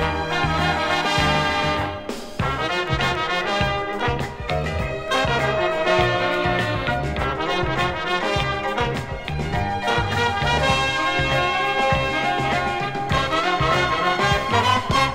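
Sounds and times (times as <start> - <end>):
disco, funk and jazz music: 0.0 - 15.1.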